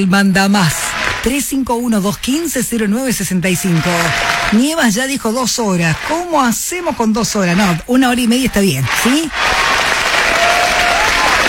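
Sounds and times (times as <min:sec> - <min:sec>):
speech: 0:00.0 - 0:09.6
live audience applause: 0:00.6 - 0:01.6, 0:03.4 - 0:06.6, 0:08.8 - 0:11.4.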